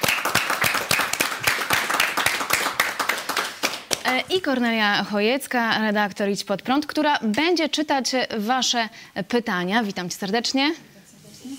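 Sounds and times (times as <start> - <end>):
small TV studio audience applause at a Polish talk programme: 0.0 - 4.2
speech: 4.1 - 10.9.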